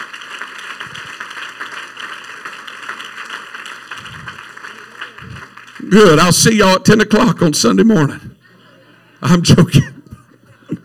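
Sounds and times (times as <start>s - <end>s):
audience clapping hands: 0.0s - 6.7s
speech: 5.9s - 8.3s, 9.2s - 9.9s.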